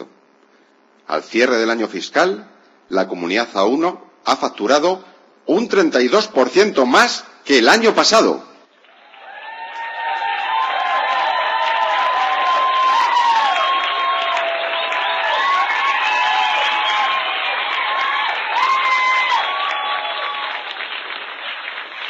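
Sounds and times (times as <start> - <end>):
speech: 1.1 - 8.5
large crowd applauding: 8.8 - 22.0
cheers and whoops: 8.9 - 21.0
shrill whistles: 12.6 - 17.3.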